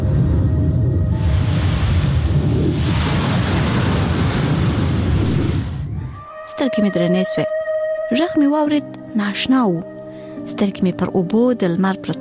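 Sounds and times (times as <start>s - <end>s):
sea waves on a beach: 0.0s - 6.1s
north wind gusting on a beach: 0.0s - 6.3s
speech: 6.6s - 12.1s.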